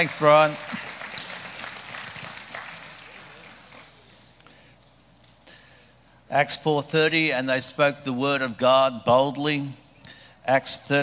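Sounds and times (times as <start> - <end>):
speech: 0.0 - 0.7, 6.3 - 9.8, 10.4 - 11.0
audience clapping: 0.0 - 4.5.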